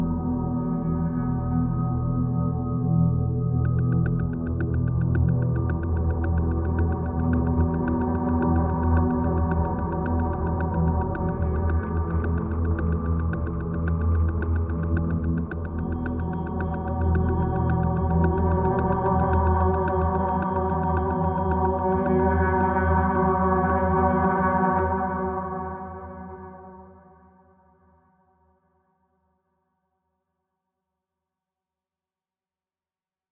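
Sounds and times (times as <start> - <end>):
atmosphere: 0.1 - 27.1.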